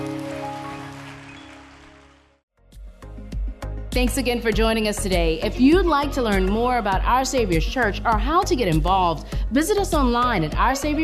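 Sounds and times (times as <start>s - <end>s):
audience clapping: 0.0s - 2.4s
speech: 3.9s - 11.0s.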